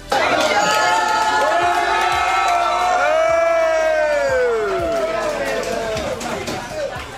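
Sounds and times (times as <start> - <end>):
crowd cheering and whooping inside a Waffle House restaurant: 0.1 - 7.0.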